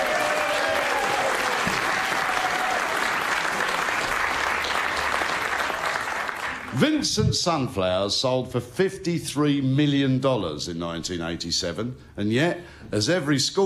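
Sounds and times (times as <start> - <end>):
audience applause: 0.0 - 6.9
speech: 6.8 - 13.6.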